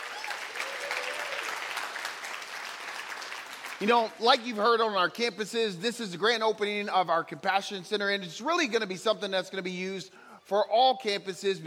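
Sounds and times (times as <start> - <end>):
church congregation applauding its joining campuses: 0.0 - 4.8
speech: 3.8 - 11.6.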